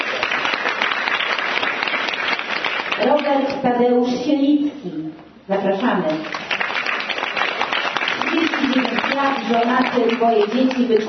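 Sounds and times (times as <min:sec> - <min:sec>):
audience applause: 0:00.0 - 0:03.2, 0:06.2 - 0:11.0
speech: 0:03.0 - 0:06.4, 0:08.8 - 0:11.0.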